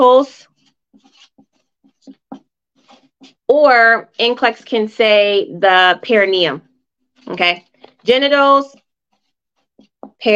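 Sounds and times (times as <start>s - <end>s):
speech: 0.0s - 0.5s, 3.5s - 6.7s, 7.3s - 8.8s, 10.2s - 10.3s
writing on a board during a nursing exam review lecture: 0.3s - 3.6s, 7.1s - 10.3s.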